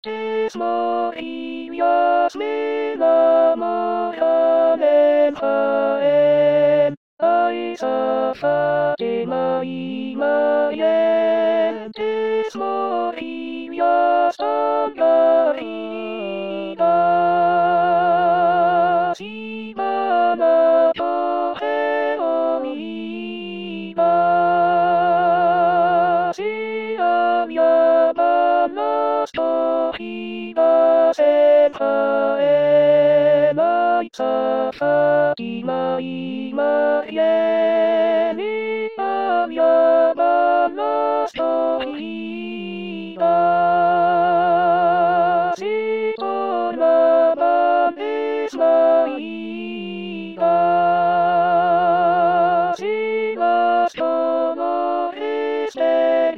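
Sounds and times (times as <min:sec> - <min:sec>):
person singing: 0:00.0 - 0:56.3.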